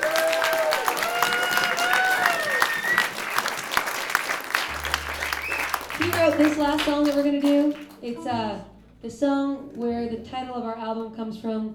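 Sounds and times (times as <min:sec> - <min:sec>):
whistles and whoops: 0:00.0 - 0:03.6, 0:05.1 - 0:06.1
live audience applause welcoming a cellist: 0:00.0 - 0:08.1
speech: 0:06.3 - 0:11.7.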